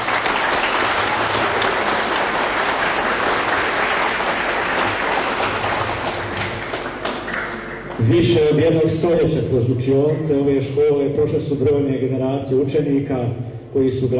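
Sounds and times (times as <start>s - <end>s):
applause at a school gathering greeting two national-team athletes: 0.0s - 8.5s
speech: 8.1s - 14.1s.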